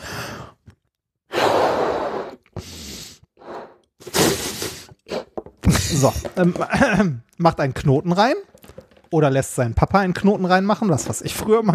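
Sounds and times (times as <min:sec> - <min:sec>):
balloon being blown up by mouth: 0:01.3 - 0:05.4
speech: 0:05.9 - 0:08.5, 0:09.1 - 0:11.7.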